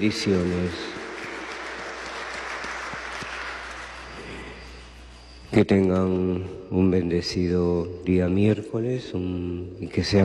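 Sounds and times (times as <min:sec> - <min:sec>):
speech: 0:00.0 - 0:01.0, 0:05.5 - 0:10.2
applause for birthday celebrants: 0:00.0 - 0:05.0.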